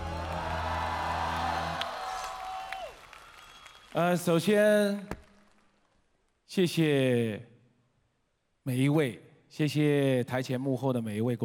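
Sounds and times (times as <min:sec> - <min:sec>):
audience clapping and cheering: 0:00.0 - 0:04.6
speech: 0:03.9 - 0:05.2, 0:06.5 - 0:07.5, 0:08.7 - 0:11.4.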